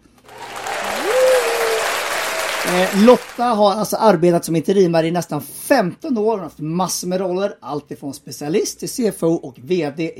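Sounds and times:
applause: 0.2s - 3.6s
speech: 2.7s - 10.1s.

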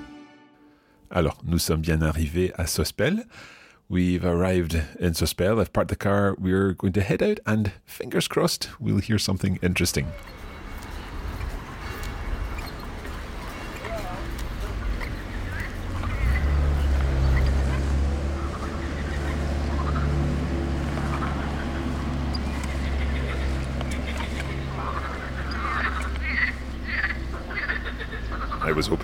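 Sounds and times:
speech: 1.2s - 10.4s, 28.8s - 29.0s
frogs chirping on the river Bévéra: 10.1s - 29.0s.

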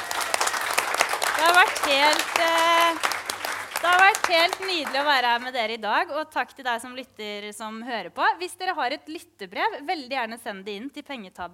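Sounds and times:
audience applause: 0.0s - 5.5s
speech: 1.4s - 3.1s, 3.8s - 11.5s.

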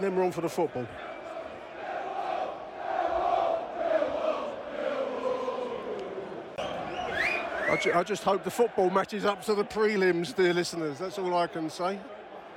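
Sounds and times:
speech: 0.0s - 1.2s, 7.7s - 12.2s
large football stadium crowd roar: 0.0s - 12.5s
football stadium crowd shouting chants: 0.5s - 10.0s.

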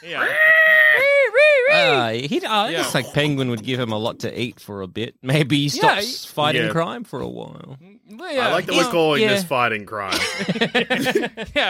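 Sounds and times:
speech: 0.0s - 0.4s, 2.1s - 11.6s
voice imitating a bat creature screeching: 0.0s - 2.0s
laughter: 10.1s - 11.6s.

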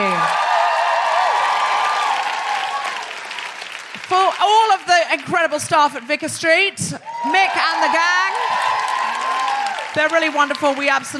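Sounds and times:
faint cheering: 0.0s - 3.2s, 7.0s - 10.0s
audience applause at Vicar Street: 0.0s - 5.5s, 7.1s - 11.1s
speech: 5.1s - 8.2s, 10.0s - 11.1s.

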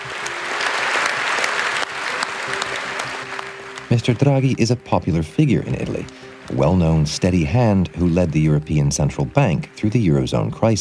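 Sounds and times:
parliamentarians' lengthy round of applause: 0.0s - 4.5s
speech: 3.9s - 10.8s.

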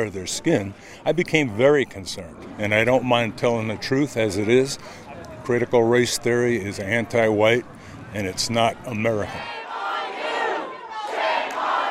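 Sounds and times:
speech: 0.0s - 9.6s
crowd booing: 9.2s - 11.8s.

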